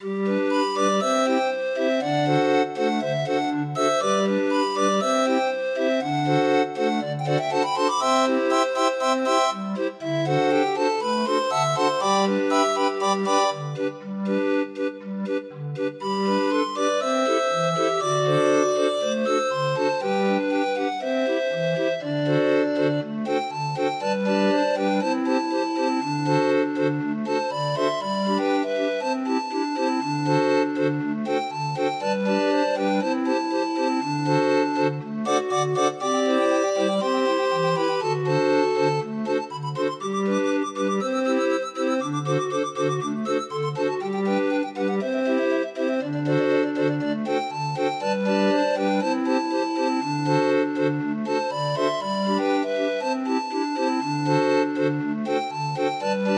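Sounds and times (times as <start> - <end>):
25-note grind organ: 0.0 - 56.3.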